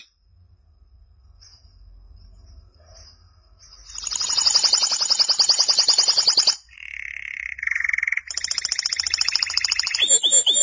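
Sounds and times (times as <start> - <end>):
canary singing a rapid high trill: 3.8 - 10.6.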